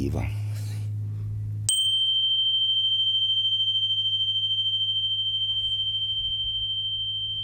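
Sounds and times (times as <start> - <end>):
low constant hum: 0.0 - 7.4
energy chime bar tuned to 528 Hz struck and ringing: 1.7 - 7.4.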